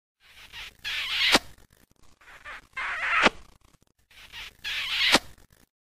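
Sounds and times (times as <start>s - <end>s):
kissing sound: 0.4s - 1.5s, 2.2s - 3.4s, 4.2s - 5.6s.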